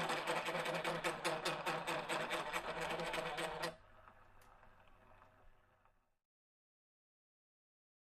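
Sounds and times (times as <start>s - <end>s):
broken juicer running with bad squeals: 0.0s - 5.6s.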